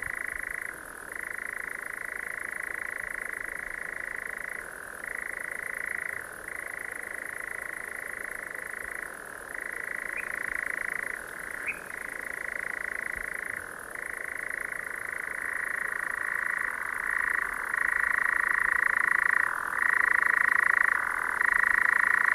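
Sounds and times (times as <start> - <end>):
nightjar: 0.0 - 22.3.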